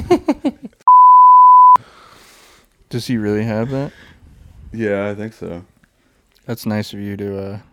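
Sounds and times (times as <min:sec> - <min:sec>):
censor bleep tone: 0:00.9 - 0:01.8
speech: 0:02.9 - 0:04.1, 0:04.7 - 0:05.7, 0:06.4 - 0:07.7.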